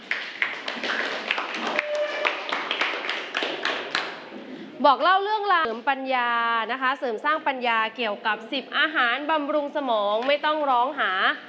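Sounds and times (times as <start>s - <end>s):
students clapping: 0.0s - 4.3s
speech: 4.8s - 11.4s.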